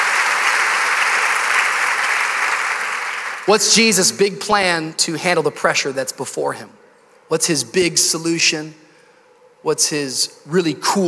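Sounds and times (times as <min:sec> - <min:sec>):
audience applause: 0:00.0 - 0:03.7
speech: 0:03.5 - 0:08.8, 0:09.6 - 0:11.0.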